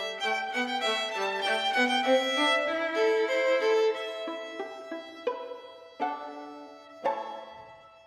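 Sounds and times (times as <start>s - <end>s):
march music: 0.1s - 7.9s.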